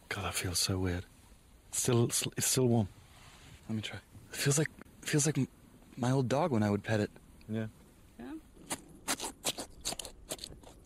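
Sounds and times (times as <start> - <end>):
speech: 0.2 - 1.1, 1.7 - 3.0, 3.7 - 7.8
crunching snips cutting open a rib cage during dissection: 8.6 - 10.8.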